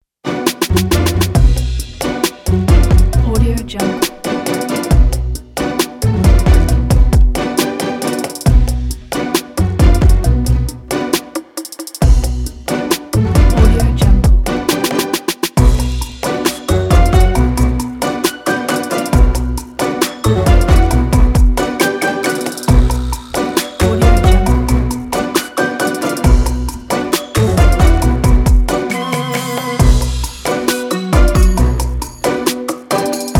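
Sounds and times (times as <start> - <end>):
quirky funny beat: 0.4 - 33.3.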